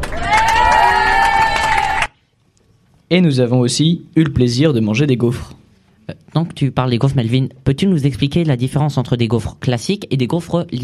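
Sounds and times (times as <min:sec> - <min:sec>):
audience applauding: 0:00.0 - 0:02.2
speech: 0:03.1 - 0:10.8.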